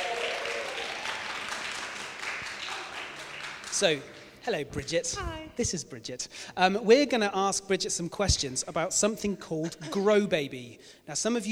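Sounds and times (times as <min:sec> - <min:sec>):
audience round of applause: 0:00.0 - 0:04.3
speech: 0:03.8 - 0:11.4.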